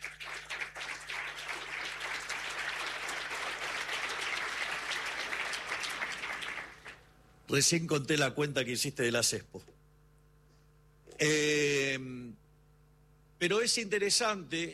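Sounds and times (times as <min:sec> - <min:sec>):
audience applause: 0:00.0 - 0:07.1
speech: 0:07.5 - 0:09.7, 0:11.2 - 0:12.4, 0:13.4 - 0:14.7.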